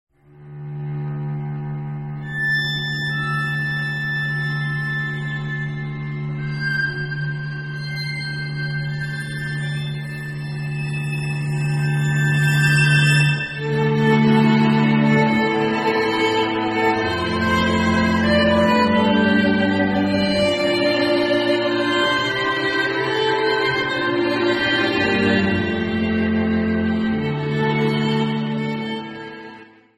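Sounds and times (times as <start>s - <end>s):
string quartet: 0.4s - 29.9s.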